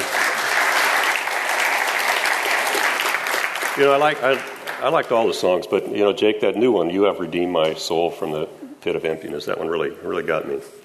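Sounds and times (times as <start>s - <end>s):
round of applause: 0.0s - 5.2s
speech: 3.8s - 10.8s.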